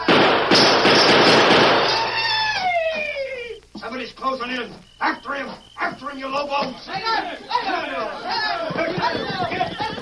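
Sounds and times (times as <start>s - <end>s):
silver-mounted revolver gunshots aimed at a cluster of bottles: 0.0s - 2.3s
speech: 4.4s - 9.2s
laughter: 7.4s - 9.9s.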